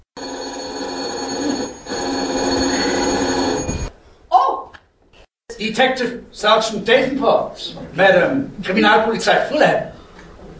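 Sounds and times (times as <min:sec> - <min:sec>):
telephone bell ringing: 0:00.2 - 0:03.9
speech: 0:05.6 - 0:09.9.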